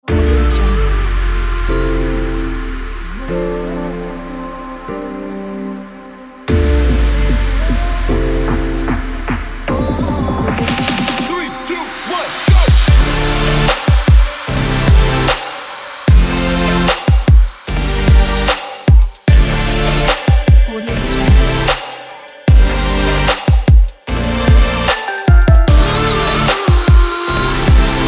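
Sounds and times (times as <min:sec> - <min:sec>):
future bass music: 0:00.0 - 0:28.0.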